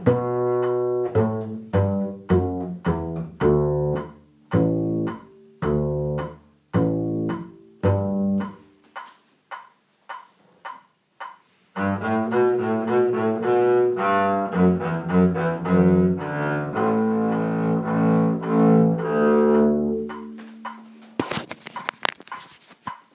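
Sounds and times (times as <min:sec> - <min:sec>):
cakewalk bass line: 0:00.0 - 0:08.6, 0:11.8 - 0:20.7.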